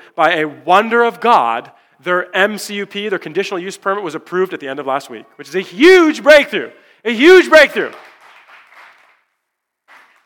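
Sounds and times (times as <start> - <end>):
speech: 0.2 - 8.1
applause: 7.7 - 10.2.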